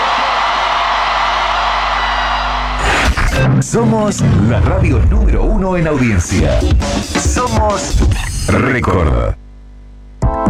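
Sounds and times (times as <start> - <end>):
large crowd cheering and clapping: 0.0 - 3.2
speech: 3.6 - 9.4.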